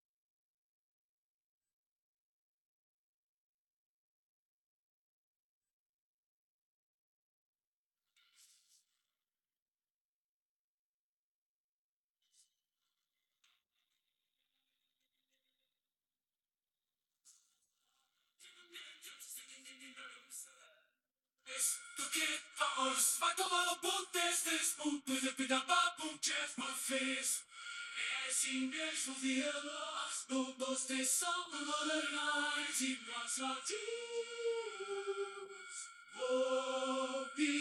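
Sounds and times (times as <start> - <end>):
person singing: 21.5 - 37.5.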